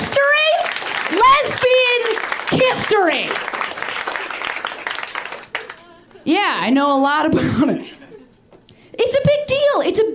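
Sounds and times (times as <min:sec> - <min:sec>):
audience applause: 0:00.3 - 0:05.9
speech: 0:02.8 - 0:03.6, 0:06.3 - 0:08.0, 0:09.0 - 0:10.1.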